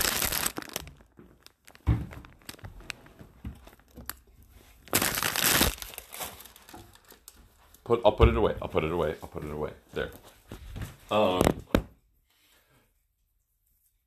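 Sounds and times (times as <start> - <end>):
fire crackling in a hearth: 0.0 - 2.8, 4.9 - 6.7
speech: 7.9 - 10.4, 11.1 - 11.7.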